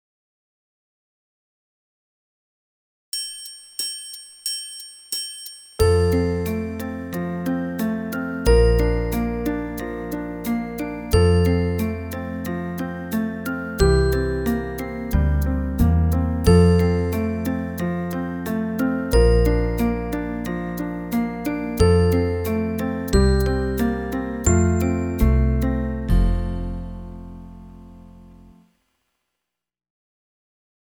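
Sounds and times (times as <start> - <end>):
slow Alberti bass pattern: 5.8 - 28.6.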